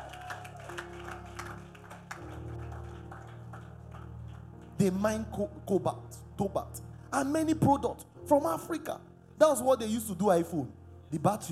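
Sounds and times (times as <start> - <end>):
audience clapping: 0.0 - 5.0
speech: 4.8 - 11.5.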